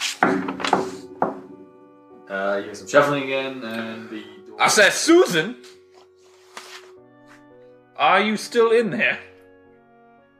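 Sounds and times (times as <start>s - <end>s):
firm knocks on a wooden hut door: 0.2s - 1.6s
speech: 2.3s - 5.8s, 8.0s - 9.3s.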